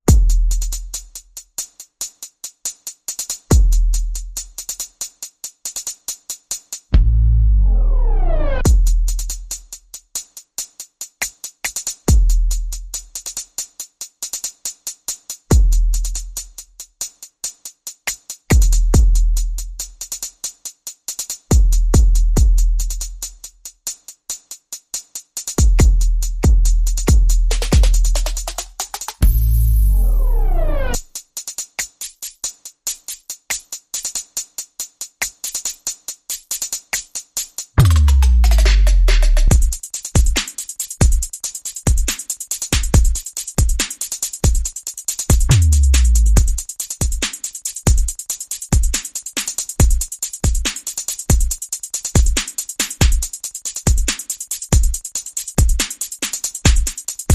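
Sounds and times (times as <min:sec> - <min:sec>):
percussion: 0:00.0 - 0:57.3
sound effects: 0:07.6 - 0:08.6, 0:29.2 - 0:31.0.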